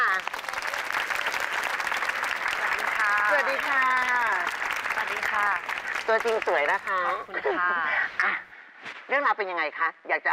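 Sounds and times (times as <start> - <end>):
audience applause welcoming a guest: 0.0 - 7.3
speech: 5.4 - 8.4, 9.1 - 10.3.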